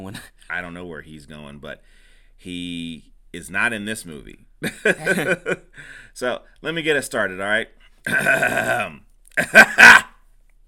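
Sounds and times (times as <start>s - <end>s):
speech: 0.0s - 10.1s
buzzing vocal groan: 8.1s - 9.0s
rough raspy throat clearing: 8.1s - 10.1s.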